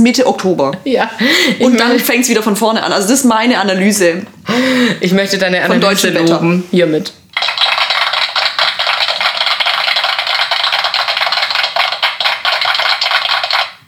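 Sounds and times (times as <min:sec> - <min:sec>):
speech: 0:00.0 - 0:07.2
clapping sound effect: 0:07.4 - 0:13.8.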